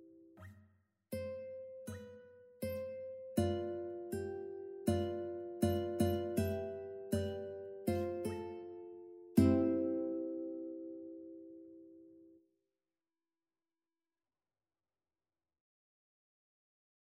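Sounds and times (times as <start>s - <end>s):
ukulele playing: 2.8s - 11.7s.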